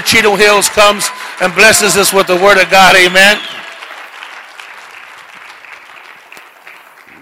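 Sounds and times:
audience clapping hands: 0.0s - 7.1s
speech: 0.1s - 3.6s.

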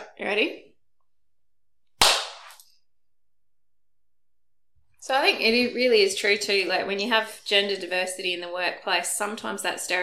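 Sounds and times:
speech: 0.2s - 0.7s, 5.0s - 10.0s
hand clap for recording sync: 2.0s - 2.6s.

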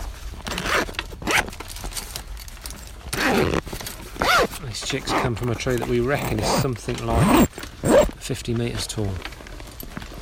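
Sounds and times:
bag zipper being pulled open: 0.4s - 1.6s, 3.1s - 8.2s
speech: 4.6s - 7.6s, 8.3s - 9.3s.

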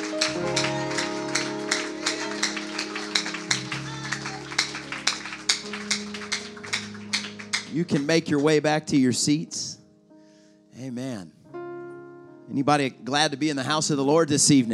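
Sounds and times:
audience clapping hands: 0.0s - 8.8s
speech: 7.8s - 9.8s, 10.8s - 11.4s, 12.5s - 14.7s.

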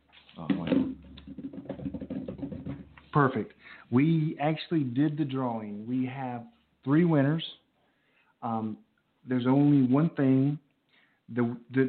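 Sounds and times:
drum roll: 0.4s - 3.2s
speech: 3.1s - 7.6s, 8.4s - 10.6s, 11.3s - 11.8s.

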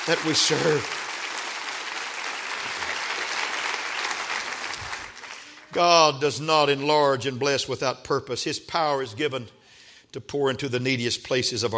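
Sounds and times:
speech: 0.0s - 1.1s, 5.7s - 11.7s
audience clapping: 0.0s - 6.2s.

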